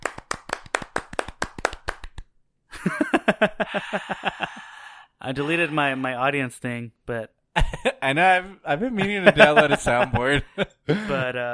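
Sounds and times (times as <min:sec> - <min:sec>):
person clapping hands: 0:00.0 - 0:02.3
speech: 0:02.8 - 0:04.6, 0:05.2 - 0:11.5
laughter: 0:02.8 - 0:04.8, 0:07.6 - 0:08.1, 0:08.8 - 0:11.5.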